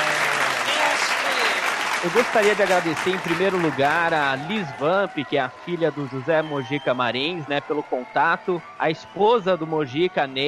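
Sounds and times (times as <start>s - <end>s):
audience applause: 0.0s - 10.4s
speech: 2.0s - 10.4s.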